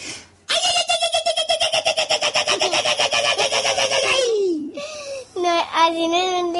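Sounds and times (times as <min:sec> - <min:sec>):
Basque irrintzi cry: 0:00.5 - 0:04.6
cackling whoops: 0:01.6 - 0:04.3
speech: 0:05.9 - 0:06.4.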